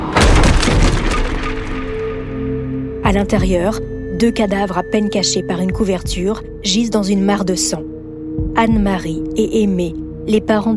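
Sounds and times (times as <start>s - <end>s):
front door being broken down: 0.2s - 1.9s
speech: 3.1s - 7.9s, 8.6s - 10.7s.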